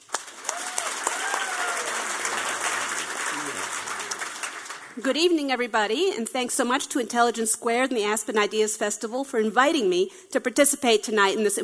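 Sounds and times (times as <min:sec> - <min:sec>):
audience applause welcoming a debater onstage at a debate event: 0:00.0 - 0:05.0
speech: 0:05.0 - 0:11.6.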